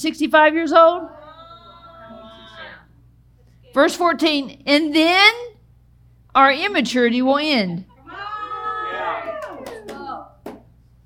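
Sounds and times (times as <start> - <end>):
speech: 0.0 - 1.2, 3.7 - 5.5, 6.3 - 7.9
audience cheering: 8.0 - 10.5
scattered claps: 9.2 - 10.7.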